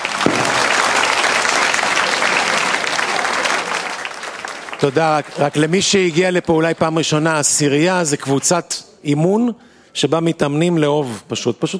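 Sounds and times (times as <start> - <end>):
audience applause: 0.0 - 6.6
speech: 4.8 - 11.7.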